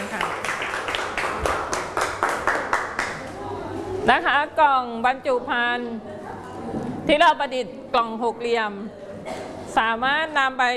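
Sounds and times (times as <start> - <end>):
classroom clapping: 0.0 - 3.4
speech: 4.0 - 9.0, 9.8 - 10.7.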